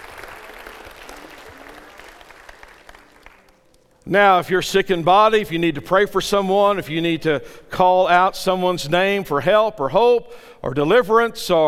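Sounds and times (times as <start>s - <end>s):
church audience hand clapping: 0.0s - 4.2s
speech: 4.1s - 11.6s.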